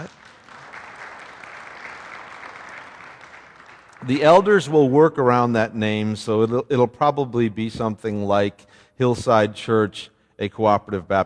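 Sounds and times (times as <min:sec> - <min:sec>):
audience clapping: 0:00.0 - 0:05.4
speech: 0:04.0 - 0:11.2.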